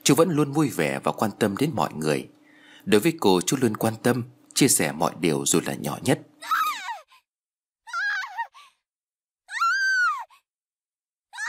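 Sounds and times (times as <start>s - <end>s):
speech: 0.1s - 6.6s
girl screaming then moaning incoherently: 6.4s - 7.3s, 7.9s - 8.6s, 9.5s - 10.5s.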